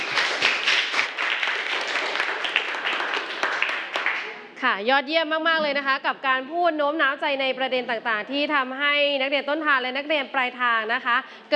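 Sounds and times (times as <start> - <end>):
students applauding: 0.0 - 4.6
speech: 4.6 - 11.5.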